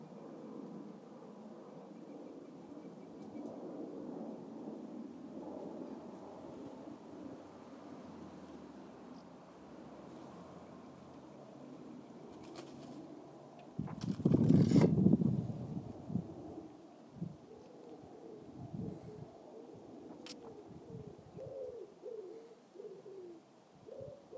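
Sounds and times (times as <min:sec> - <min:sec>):
pigeon: 0:00.0 - 0:03.8, 0:10.1 - 0:13.3, 0:17.4 - 0:24.3
plane: 0:00.0 - 0:24.3.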